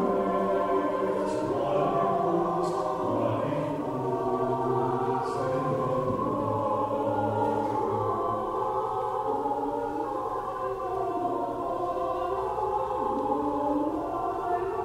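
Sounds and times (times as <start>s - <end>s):
SATB choir singing: 0.0s - 14.8s.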